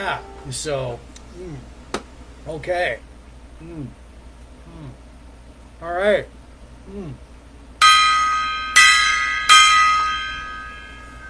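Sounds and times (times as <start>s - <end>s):
gong being struck: 0.0s - 0.8s, 7.8s - 11.2s
speech: 0.0s - 1.8s, 2.4s - 4.0s, 5.8s - 7.3s.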